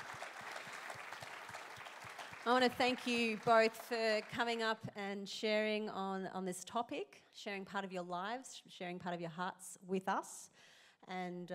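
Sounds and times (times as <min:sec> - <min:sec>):
church audience applause: 0:00.0 - 0:04.6
speech: 0:02.4 - 0:11.5.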